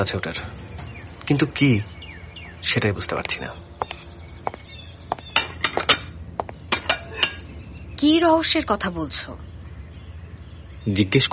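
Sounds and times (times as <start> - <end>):
speech: 0.0 - 0.6, 1.3 - 2.0, 2.6 - 3.8, 8.0 - 9.5, 10.8 - 11.3
china dishes and metal cutlery clinking as a plate of cake is brought: 5.1 - 7.4.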